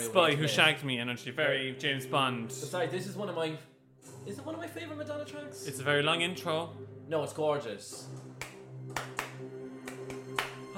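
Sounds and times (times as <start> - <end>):
speech: 0.0 - 8.3
hand claps: 8.2 - 10.7.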